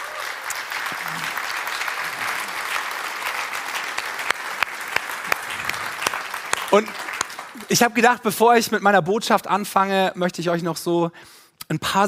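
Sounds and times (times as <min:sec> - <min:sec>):
audience applause: 0:00.0 - 0:08.0
speech: 0:06.7 - 0:07.0, 0:07.7 - 0:12.0.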